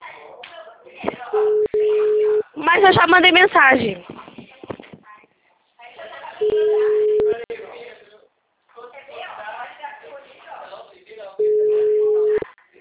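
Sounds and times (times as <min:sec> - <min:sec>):
telephone ringback tones: 0:01.4 - 0:02.4, 0:06.4 - 0:07.4, 0:11.4 - 0:12.4
speech: 0:02.8 - 0:04.2.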